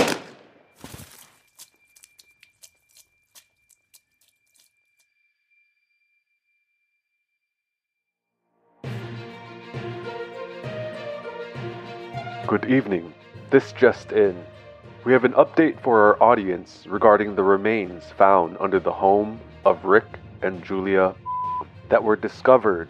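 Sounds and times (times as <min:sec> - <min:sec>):
gunshot: 0:00.0 - 0:00.7
speech: 0:12.5 - 0:21.2, 0:21.9 - 0:22.8.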